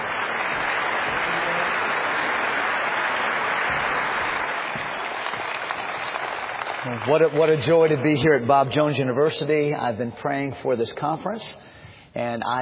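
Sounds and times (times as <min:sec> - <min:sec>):
audience clapping to welcome a pastor at a Bob Jones University conference: 0:00.0 - 0:09.2
speech: 0:06.8 - 0:12.6.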